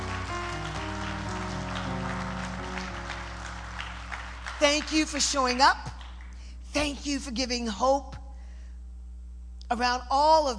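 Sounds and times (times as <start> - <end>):
audience applause: 0.0 - 6.4
speech: 4.6 - 5.9, 6.8 - 8.2, 9.7 - 10.5.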